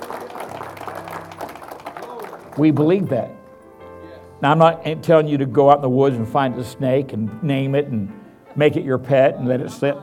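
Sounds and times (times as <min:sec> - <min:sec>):
audience hand clap of praise: 0:00.0 - 0:03.2
speech: 0:02.6 - 0:03.4, 0:04.4 - 0:10.0.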